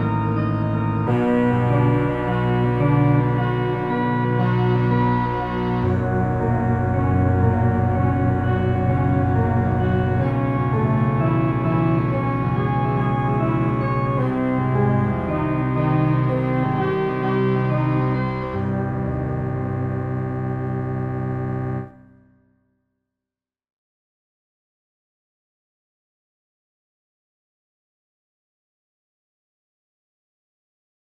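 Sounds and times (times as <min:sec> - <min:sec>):
fractal music chord progressions: 0:00.0 - 0:22.0.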